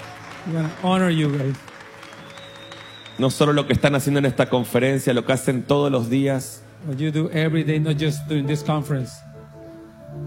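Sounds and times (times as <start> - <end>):
audience applause honouring conference helpers: 0.0 - 4.4
speech: 0.4 - 1.7, 3.2 - 9.3.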